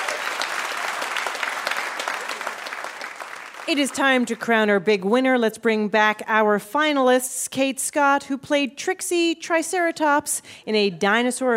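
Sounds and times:
audience applause: 0:00.0 - 0:04.4
speech: 0:03.7 - 0:11.5.

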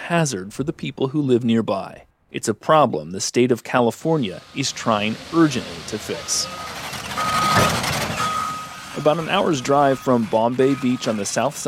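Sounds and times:
speech: 0:00.1 - 0:07.7, 0:09.0 - 0:11.6
rumble and clatter of heavy construction machinery: 0:04.4 - 0:11.6
excavator reversing beep at construction site: 0:06.1 - 0:11.6.

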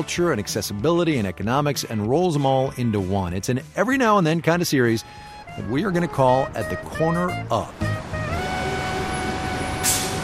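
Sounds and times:
speech: 0:00.0 - 0:07.9
street traffic at the corner of Hollywood and Vine in Hollywood: 0:05.0 - 0:10.2
air brake hiss: 0:09.8 - 0:10.2.

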